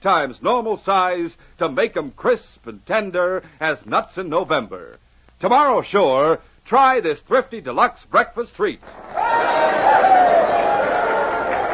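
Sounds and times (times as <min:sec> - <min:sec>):
speech: 0:00.0 - 0:10.1
crowd cheering and shouting: 0:08.8 - 0:11.7.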